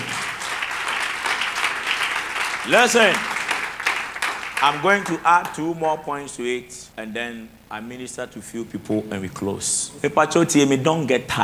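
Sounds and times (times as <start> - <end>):
audience clapping: 0.0 - 5.8
speech: 2.7 - 3.3, 4.6 - 11.4.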